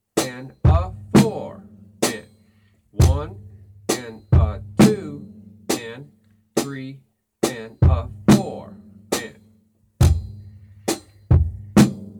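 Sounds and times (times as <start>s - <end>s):
drum beat: 0.2s - 2.4s, 3.0s - 6.0s, 6.6s - 6.8s, 7.4s - 9.4s, 10.0s - 12.1s.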